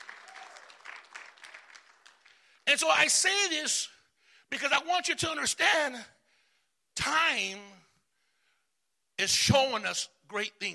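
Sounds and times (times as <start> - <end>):
audience applause: 0.0 - 2.5
speech: 2.7 - 6.2, 7.0 - 7.8, 9.2 - 10.7.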